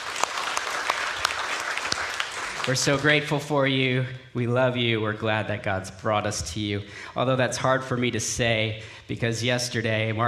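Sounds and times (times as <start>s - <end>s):
audience applauding: 0.0s - 3.4s
speech: 2.6s - 10.2s.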